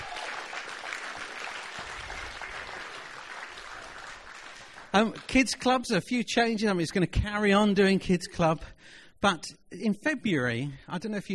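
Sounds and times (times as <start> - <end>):
audience applause: 0.0 - 5.3
speech: 5.0 - 11.3.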